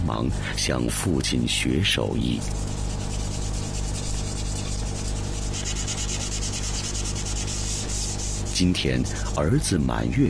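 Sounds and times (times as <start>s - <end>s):
speech: 0.1s - 2.8s, 8.6s - 10.2s
wood being sanded while carving: 2.2s - 9.7s.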